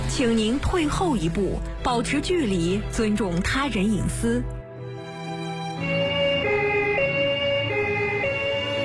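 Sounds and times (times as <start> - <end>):
speech: 0.2 - 4.6
emergency vehicle siren on duty: 5.8 - 8.8.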